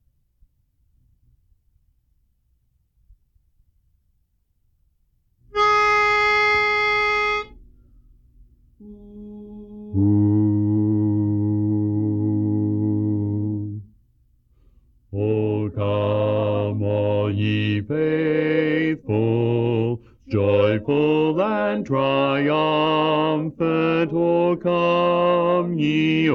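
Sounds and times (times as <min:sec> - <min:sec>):
bass playing a Christmas carol: 0:05.5 - 0:13.9, 0:15.2 - 0:26.3.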